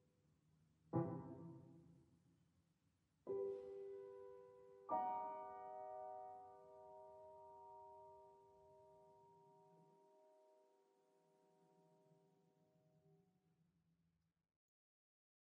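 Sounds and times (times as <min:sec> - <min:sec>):
piano music: 0:03.3 - 0:10.1.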